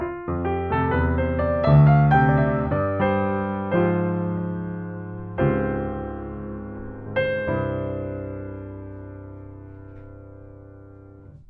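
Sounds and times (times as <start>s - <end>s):
piano test through an audio interface: 0.0s - 11.4s.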